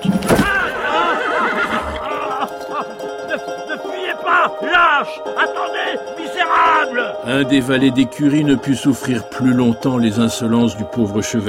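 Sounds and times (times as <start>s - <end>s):
laughter: 0.4s - 9.7s
horse neighing as it stumbles mid-gallop: 0.6s - 2.5s
speech: 7.1s - 11.4s.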